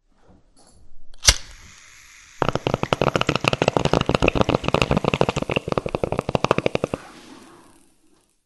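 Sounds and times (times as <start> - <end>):
bong: 2.4 - 7.8.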